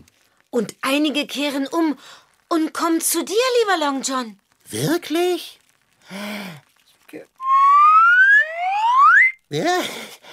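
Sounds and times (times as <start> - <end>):
speech: 0.5 - 7.3, 9.5 - 10.3
whistle blowing: 7.4 - 9.4.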